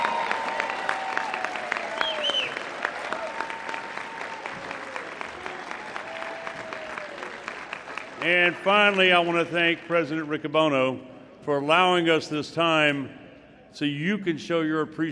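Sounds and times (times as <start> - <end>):
audience applause: 0.0 - 9.8
speech: 8.2 - 15.1.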